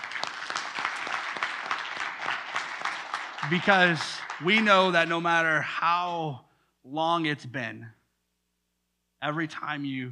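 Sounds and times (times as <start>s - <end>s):
audience clapping: 0.0s - 5.6s
speech: 3.4s - 8.0s, 9.2s - 10.1s.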